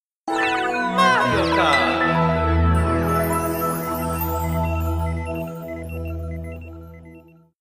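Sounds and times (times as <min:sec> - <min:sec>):
video game menu music: 0:00.4 - 0:07.5.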